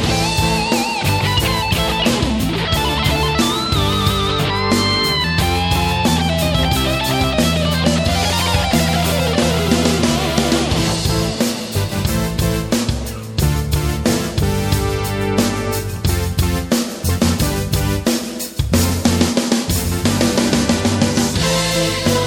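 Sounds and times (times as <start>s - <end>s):
stereo backing track without vocals: 0.0s - 22.2s
guitar solo: 0.1s - 11.0s.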